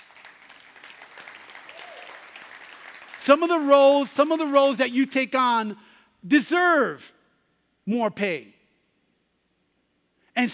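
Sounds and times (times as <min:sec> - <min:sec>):
audience clapping: 0:00.0 - 0:04.0
speech: 0:03.2 - 0:07.2, 0:07.9 - 0:08.6.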